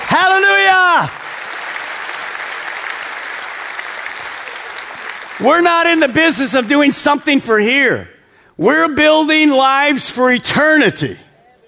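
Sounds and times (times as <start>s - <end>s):
audience clapping: 0.0s - 7.4s
speech: 5.4s - 11.2s.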